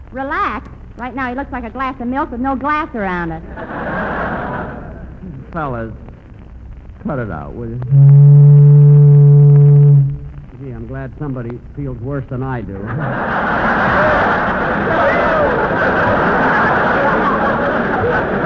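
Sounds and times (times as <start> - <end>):
broad rumbling noise: 0.0 - 18.4
speech: 0.1 - 4.2, 5.2 - 6.0, 7.0 - 8.5, 10.9 - 16.5
laughter: 3.4 - 5.4, 12.7 - 18.4
boat whistle blast: 7.8 - 10.5.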